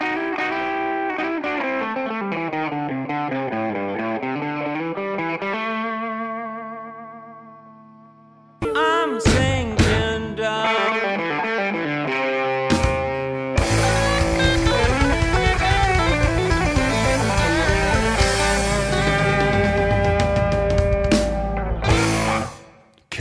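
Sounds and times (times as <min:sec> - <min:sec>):
heavily effected distorted chorus-laden electric guitar: 0:00.0 - 0:22.9
blues rock band riffs with drums: 0:09.3 - 0:10.2, 0:12.4 - 0:22.8.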